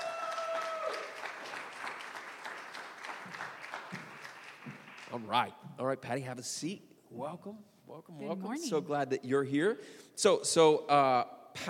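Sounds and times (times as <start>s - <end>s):
audience applause: 0.0s - 5.3s
speech: 5.1s - 11.6s.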